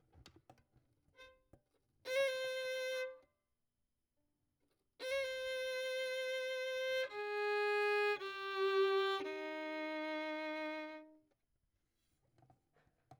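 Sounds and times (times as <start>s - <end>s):
violin: 2.0s - 3.3s, 5.0s - 11.3s.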